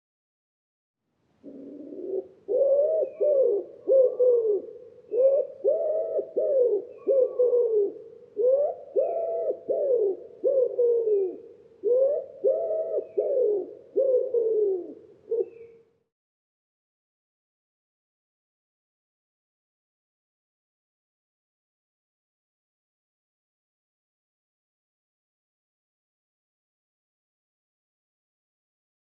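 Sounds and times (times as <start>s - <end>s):
Common Wood Pigeon cooing: 1.4s - 15.8s.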